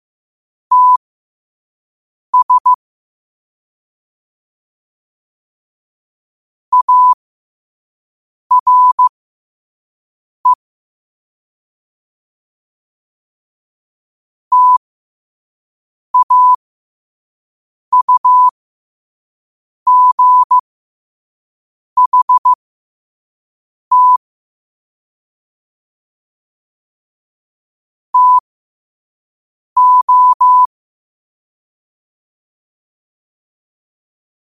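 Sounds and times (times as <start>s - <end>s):
morse code at 5 wpm: 0.7s - 1.0s, 2.4s - 2.8s, 6.7s - 7.2s, 8.5s - 9.1s, 14.5s - 14.8s, 16.2s - 16.6s, 17.9s - 18.5s, 19.9s - 20.6s, 22.0s - 22.6s, 23.9s - 24.2s, 28.2s - 28.4s, 29.8s - 30.7s.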